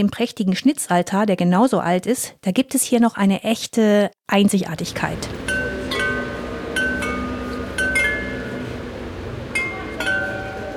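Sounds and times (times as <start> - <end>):
speech: 0.0 - 5.4
37 Meissen porcelain carillon bells ringing: 5.5 - 8.8, 9.5 - 10.7.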